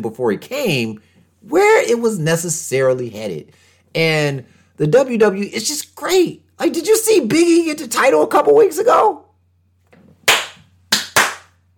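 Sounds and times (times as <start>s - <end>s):
speech: 0.0s - 9.2s
rhythmic hand clapping: 10.2s - 11.6s.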